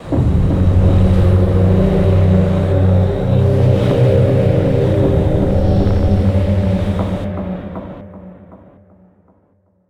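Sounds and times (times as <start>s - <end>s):
game over drone: 0.1s - 7.3s.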